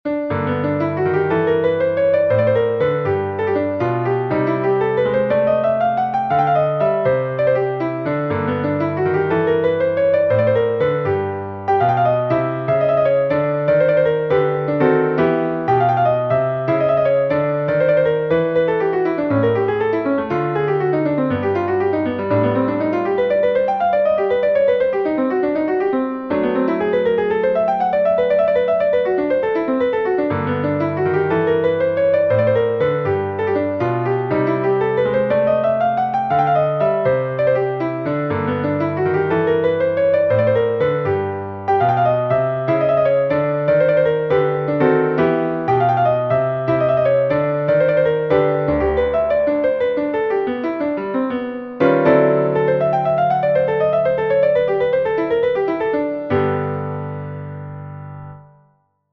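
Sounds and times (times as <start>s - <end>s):
jazz exercise: 0.1s - 58.6s.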